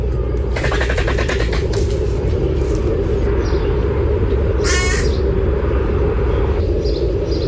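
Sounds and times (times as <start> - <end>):
low rumble: 0.0 - 7.4
griffon vultures giving harsh cackling calls: 0.5 - 2.0, 4.5 - 5.4.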